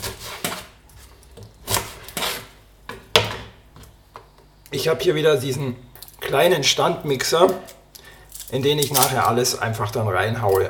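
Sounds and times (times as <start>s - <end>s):
knife dicing half an onion: 0.0s - 3.3s
speech: 4.8s - 7.8s, 8.5s - 10.6s.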